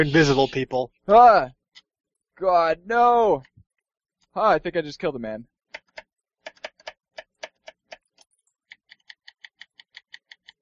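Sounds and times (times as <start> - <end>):
speech: 0.0 - 1.6, 2.4 - 3.5, 4.4 - 5.5
mechanical keyboard typing: 5.7 - 10.6.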